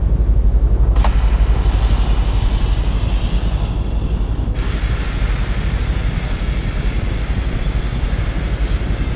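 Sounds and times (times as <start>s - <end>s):
engine: 0.0s - 9.1s.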